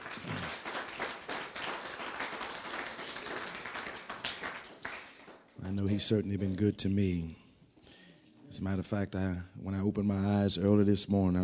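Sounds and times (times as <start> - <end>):
audience clapping hands in praise: 0.0 - 5.6
speech: 5.7 - 7.4, 8.6 - 11.4.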